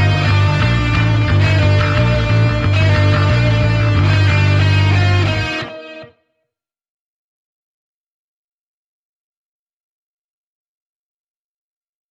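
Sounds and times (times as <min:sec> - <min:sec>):
bass guitar: 0:00.0 - 0:06.1.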